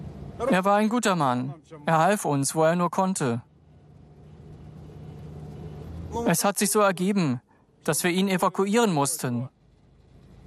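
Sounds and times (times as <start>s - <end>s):
speech: 0.4s - 3.5s, 6.1s - 9.6s
car driving off: 3.5s - 6.3s, 9.5s - 10.4s.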